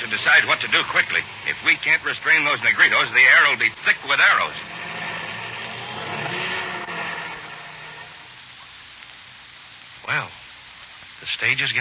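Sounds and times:
speech: 0:00.1 - 0:04.7, 0:11.3 - 0:11.7
motor engine running with a rough roar: 0:00.4 - 0:08.4.

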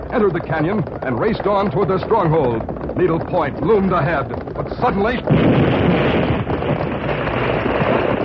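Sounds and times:
speech: 0:00.1 - 0:05.8
explosion rocking the ground: 0:05.2 - 0:08.2.

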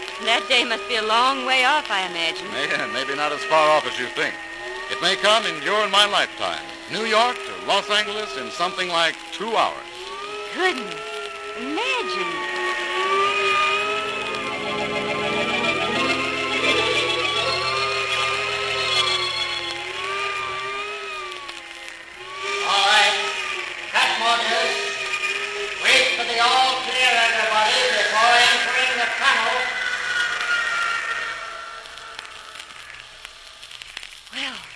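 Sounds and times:
speech: 0:00.2 - 0:09.9, 0:10.6 - 0:12.5
test plane buffeted by high-speed air: 0:12.3 - 0:32.9.

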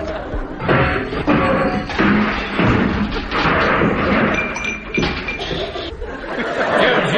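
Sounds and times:
laughter: 0:00.0 - 0:01.9, 0:05.2 - 0:07.1
bicycle crashing into an office: 0:00.6 - 0:05.9.

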